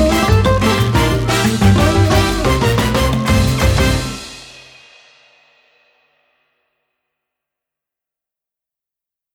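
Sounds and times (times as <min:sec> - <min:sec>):
mambo instrumental music: 0:00.0 - 0:05.1.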